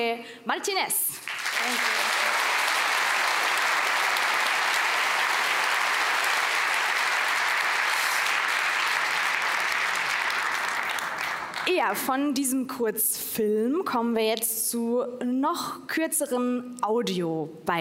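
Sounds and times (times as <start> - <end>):
speech: 0.0 - 2.0, 11.7 - 17.7
audience applause: 1.2 - 11.8.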